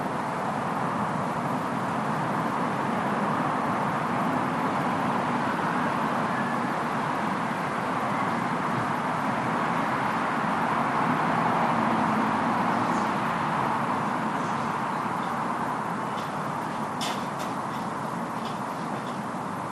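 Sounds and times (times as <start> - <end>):
distant evening traffic in a residential area: 0.0 - 19.6
distant evening voices in a residential area: 0.0 - 19.6.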